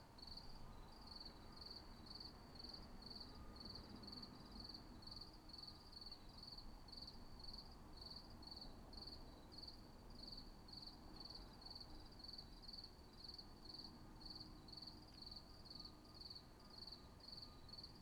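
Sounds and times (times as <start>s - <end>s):
cricket chirping in short pulsed bursts: 0.2s - 18.0s.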